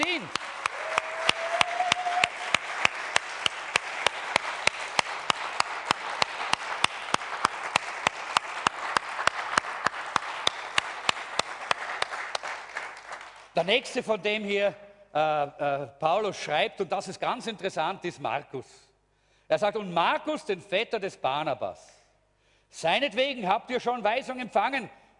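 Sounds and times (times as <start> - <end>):
audience applause: 0.0 - 13.5
speech: 13.6 - 18.9, 19.5 - 22.0, 22.7 - 25.0.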